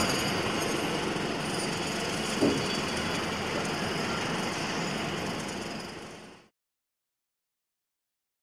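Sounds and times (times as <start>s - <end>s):
construction site ambience: 0.0s - 6.5s.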